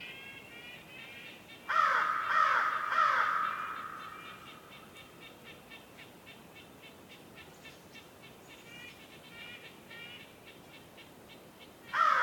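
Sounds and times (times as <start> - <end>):
crow cawing in a winter forest: 1.7 - 5.0, 11.9 - 12.2.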